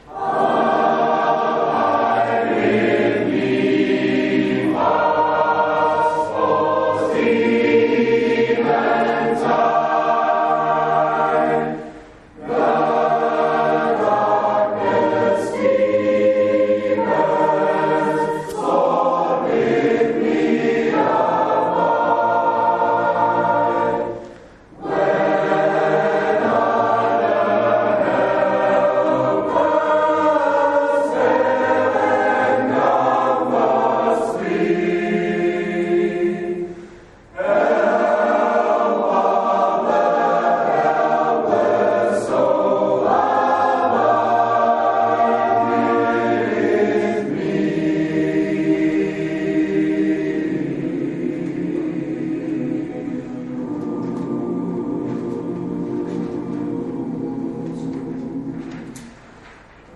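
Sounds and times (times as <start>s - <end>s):
choir singing: 0.0s - 59.9s.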